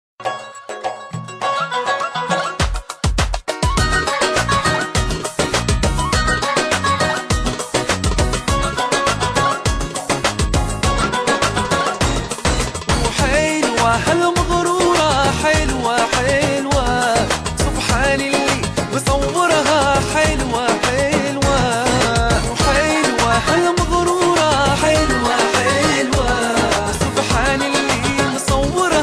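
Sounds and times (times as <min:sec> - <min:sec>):
jazz music: 0:00.7 - 0:29.0.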